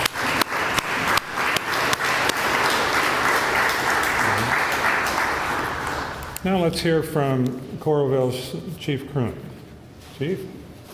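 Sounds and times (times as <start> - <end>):
audience applause at a Peace Officer Memorial Day ceremony: 0.0 - 6.4
speech: 6.4 - 9.5, 10.2 - 10.6.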